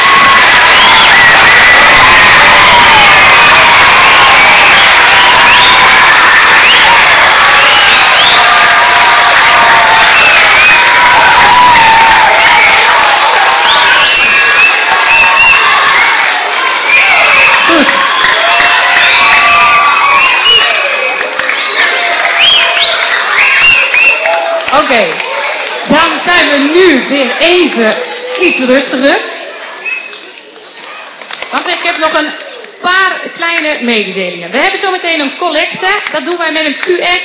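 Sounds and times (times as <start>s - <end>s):
excited shouts and whoops from many voices including children: 0.0s - 24.7s
applause and cheering for children: 0.0s - 32.8s
speech: 25.0s - 25.2s, 26.4s - 29.3s, 32.2s - 32.4s, 33.7s - 37.2s.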